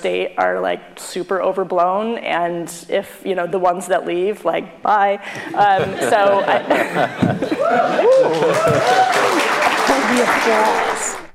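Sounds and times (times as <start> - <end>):
speech: 0.0 - 9.5, 10.1 - 11.0
laughter: 5.3 - 10.7
crowd cheering and whooping: 6.4 - 11.2
crowd applauding at an event: 6.8 - 11.3.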